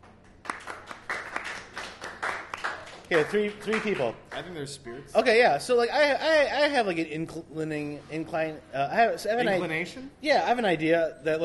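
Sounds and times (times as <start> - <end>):
scattered handclaps from a small live audience: 0.0 - 4.5
speech: 3.1 - 11.4.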